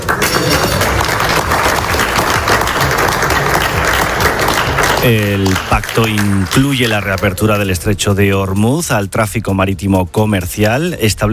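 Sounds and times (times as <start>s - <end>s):
applause at a signing ceremony: 0.0s - 7.8s
speech: 5.0s - 11.3s.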